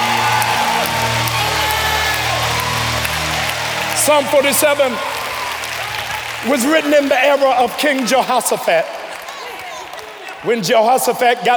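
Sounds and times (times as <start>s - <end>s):
music: 0.0s - 7.2s
audience clapping rhythmically: 0.0s - 11.5s
crowd noise: 0.0s - 11.5s
speech: 4.1s - 5.1s, 6.4s - 9.0s, 10.4s - 11.5s.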